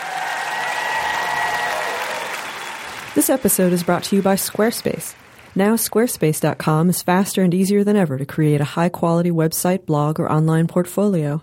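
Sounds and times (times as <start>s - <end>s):
audience applause: 0.0s - 5.6s
speech: 3.2s - 11.4s.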